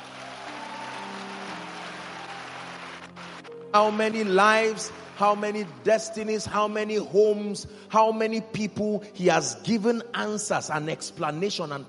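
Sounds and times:
audience clapping: 0:00.0 - 0:06.6
sustained low musical tones: 0:00.0 - 0:07.4
speech: 0:03.7 - 0:11.8.

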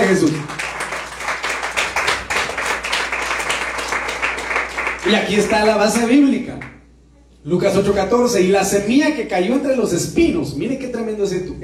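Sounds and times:
audience clapping hands: 0:00.0 - 0:06.8
speech: 0:00.1 - 0:00.6, 0:05.0 - 0:06.7, 0:07.4 - 0:11.6.

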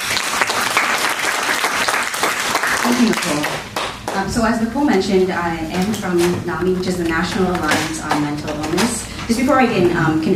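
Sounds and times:
audience applause: 0:00.0 - 0:04.1
speech: 0:02.9 - 0:10.3.

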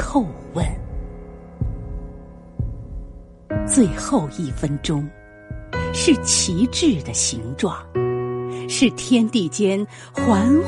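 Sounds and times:
heartbeat thumps: 0:00.0 - 0:06.2
speech: 0:00.1 - 0:00.8, 0:03.8 - 0:05.2, 0:06.0 - 0:08.0, 0:08.7 - 0:10.6.

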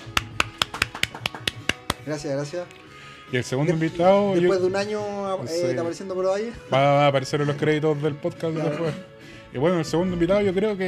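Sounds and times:
brief applause: 0:00.0 - 0:02.2
speech: 0:02.0 - 0:10.8.

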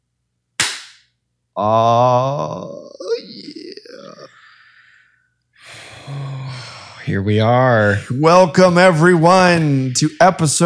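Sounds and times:
hand clap to start recording: 0:00.6 - 0:01.0
speech: 0:01.6 - 0:02.8, 0:07.1 - 0:10.6.

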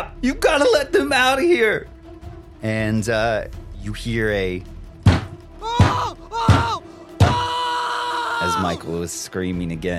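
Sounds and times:
speech: 0:00.2 - 0:01.9, 0:02.6 - 0:04.7, 0:08.4 - 0:09.9
hammering a nail: 0:05.1 - 0:07.4.

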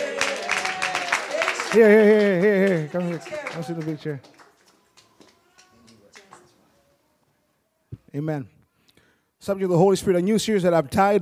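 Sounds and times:
audience clapping: 0:00.0 - 0:06.6
speech: 0:01.7 - 0:04.4, 0:08.1 - 0:08.6, 0:09.4 - 0:11.2.

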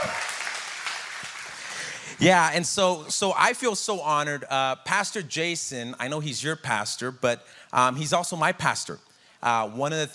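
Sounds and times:
audience applause: 0:00.0 - 0:02.1
speech: 0:02.2 - 0:10.1.

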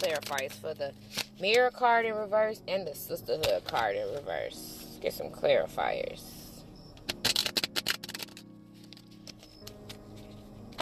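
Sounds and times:
tarot cards being shuffled: 0:00.0 - 0:01.4, 0:07.0 - 0:10.8
speech: 0:00.0 - 0:06.4.

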